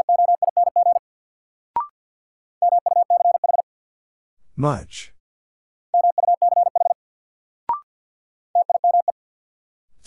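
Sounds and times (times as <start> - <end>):
morse code beeps: 0.0 - 1.0, 2.6 - 3.6, 6.0 - 7.0, 8.6 - 9.2
speech: 4.6 - 5.2.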